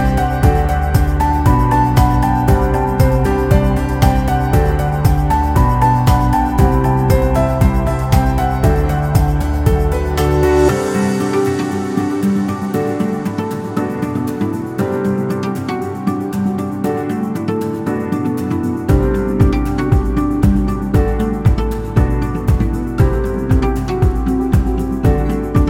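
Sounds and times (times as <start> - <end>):
happy pop folk acoustic guitar music: 0.0 - 25.6.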